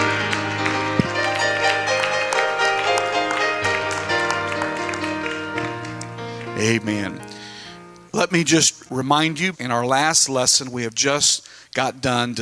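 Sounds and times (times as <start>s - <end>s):
audience clapping: 0.0s - 7.3s
speech: 6.6s - 7.3s, 8.2s - 12.3s.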